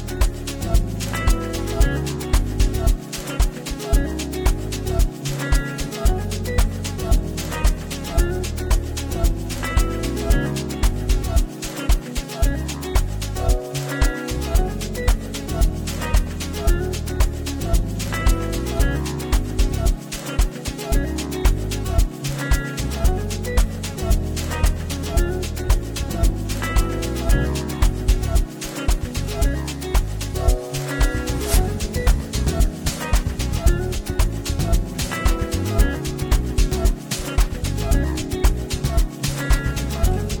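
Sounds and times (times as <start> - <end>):
guitars: 0.0 - 40.3
saxophone: 0.0 - 40.3.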